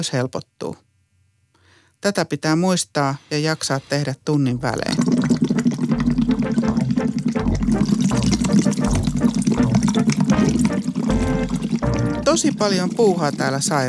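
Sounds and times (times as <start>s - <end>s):
speech: 0.0s - 0.9s, 2.0s - 5.2s, 12.4s - 13.8s
air blown through a tube into a bottle of water bubbling: 4.5s - 13.8s.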